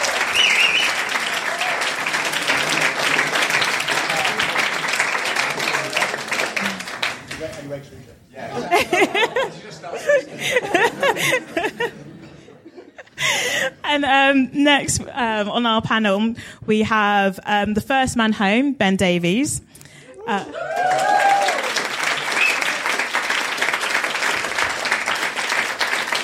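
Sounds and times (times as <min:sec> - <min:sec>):
audience clapping: 0:00.0 - 0:08.0, 0:20.5 - 0:26.2
chuckles and scattered voices: 0:08.4 - 0:13.7
speech: 0:14.1 - 0:21.0.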